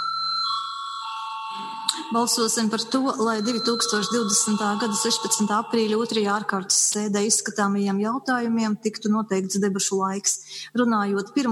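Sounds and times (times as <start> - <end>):
parliament voting bell: 0.0 - 6.5
speech: 1.5 - 11.5.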